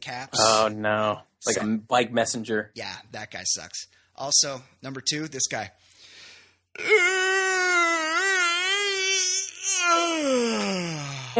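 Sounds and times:
speech: 0:00.1 - 0:05.9, 0:06.8 - 0:07.4, 0:09.8 - 0:11.3
exaggerated voiced yawn: 0:06.8 - 0:11.3.

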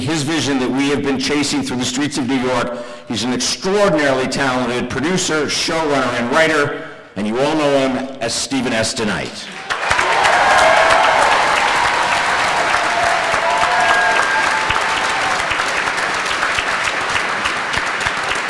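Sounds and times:
speech: 0:00.1 - 0:09.6
faint cheers and whistles: 0:09.6 - 0:16.8
audience applause: 0:09.6 - 0:18.4.

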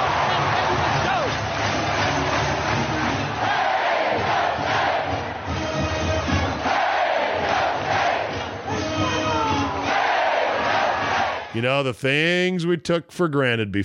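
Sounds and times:
crowd cheering and chanting: 0:00.0 - 0:12.5
speech: 0:11.6 - 0:13.8.

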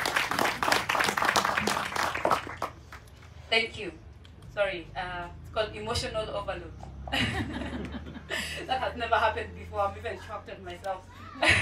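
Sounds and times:
audience applause: 0:00.0 - 0:03.0
speech: 0:03.5 - 0:04.0, 0:04.6 - 0:11.6
laughter: 0:07.1 - 0:08.9, 0:11.4 - 0:11.6.

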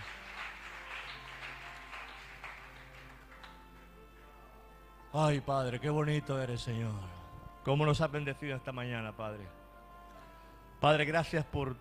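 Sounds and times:
crowd clapping: 0:00.0 - 0:04.4
speech: 0:05.1 - 0:09.6, 0:10.8 - 0:11.7.

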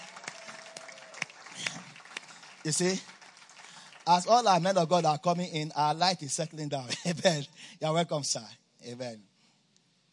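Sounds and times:
audience clapping: 0:00.0 - 0:06.0
speech: 0:02.6 - 0:03.1, 0:04.0 - 0:09.3
laughter: 0:06.8 - 0:07.5.

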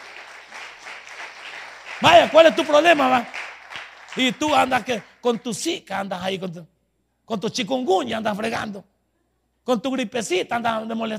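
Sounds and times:
audience applause: 0:00.0 - 0:05.3
speech: 0:02.0 - 0:03.4, 0:04.2 - 0:06.7, 0:07.3 - 0:08.9, 0:09.6 - 0:11.1.

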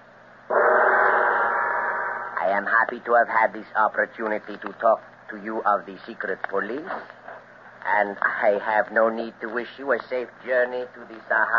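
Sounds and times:
gong being struck to summon guards: 0:00.5 - 0:02.7
speech: 0:02.5 - 0:07.2, 0:07.8 - 0:11.5.

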